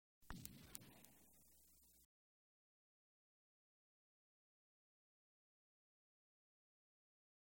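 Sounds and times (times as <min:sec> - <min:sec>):
gunshot: 0:00.3 - 0:01.4.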